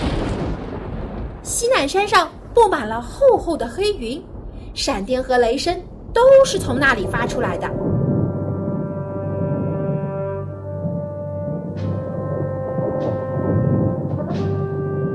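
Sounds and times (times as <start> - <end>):
speech: 1.5 - 7.9
horn blast: 7.6 - 15.1.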